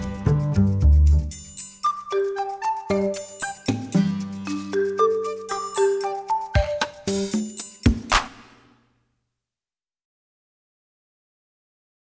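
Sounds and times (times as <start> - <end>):
wood ensemble playing: 0.0 - 1.4, 2.0 - 7.4.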